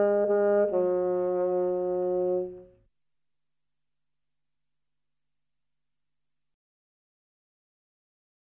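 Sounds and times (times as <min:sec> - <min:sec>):
bassoon: 0:00.0 - 0:02.8.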